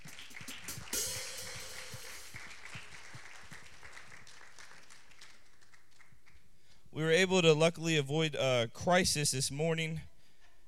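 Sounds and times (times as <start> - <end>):
audience applause: 0.0 - 6.4
speech: 7.0 - 10.1.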